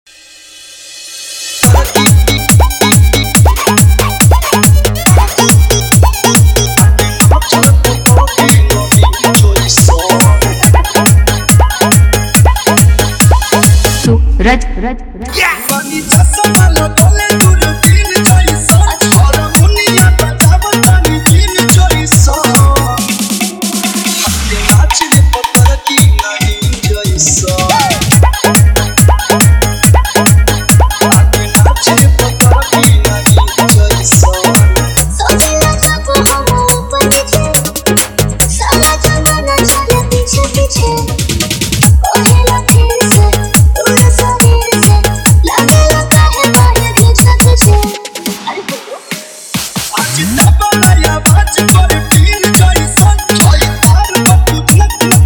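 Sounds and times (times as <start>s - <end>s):
Bhojpuri DJ remix song: 1.0s - 55.2s.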